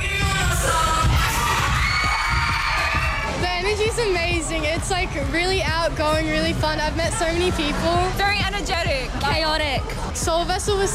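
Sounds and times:
concert crowd cheering wildly: 0.2s - 4.4s
speech: 4.0s - 10.9s.

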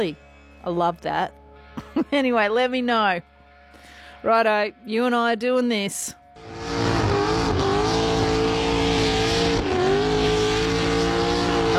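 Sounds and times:
speech: 0.0s - 1.4s, 2.0s - 6.2s
car tires burning rubber, squealing: 6.5s - 11.7s.

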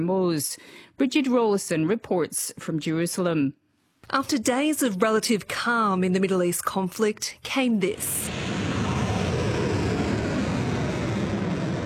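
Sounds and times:
speech: 0.0s - 8.5s
missiles and drones launched in an attack: 7.9s - 11.8s.

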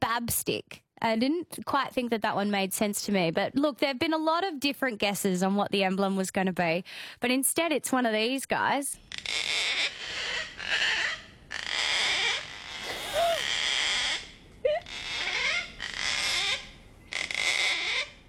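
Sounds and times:
speech: 0.2s - 10.0s
cockatoo call sound effect: 9.1s - 18.2s.

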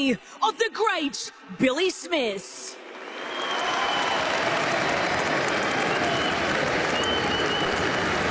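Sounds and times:
speech: 0.0s - 2.8s
large stadium crowd applause in tribute: 2.8s - 8.2s.

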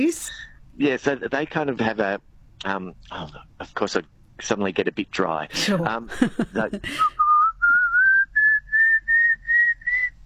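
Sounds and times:
speech: 0.0s - 7.2s
laughter: 5.5s - 7.2s
person whistling imitation of pallid cuckoo call: 7.0s - 10.2s.

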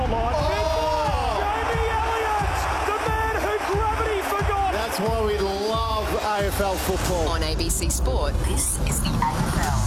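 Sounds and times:
stadium crowd roaring and cheering: 0.2s - 7.0s
speech: 6.5s - 9.8s.

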